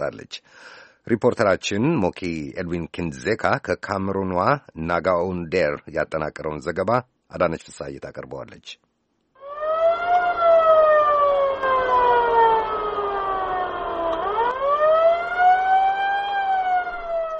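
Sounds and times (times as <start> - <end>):
speech: 0.0 - 8.8
ambulance siren wailing near the Cameroon–Central African Republic border: 9.4 - 17.3.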